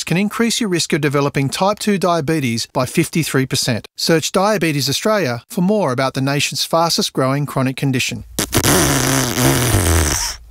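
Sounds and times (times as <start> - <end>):
speech: 0.1 - 9.7
fart-like sound effect as rough car exhaust: 8.4 - 10.4.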